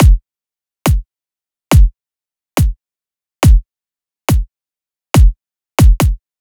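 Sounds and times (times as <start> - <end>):
140 bpm kick drum loop: 0.0 - 0.2, 0.9 - 1.1, 1.7 - 1.9, 3.4 - 3.6, 5.2 - 6.2.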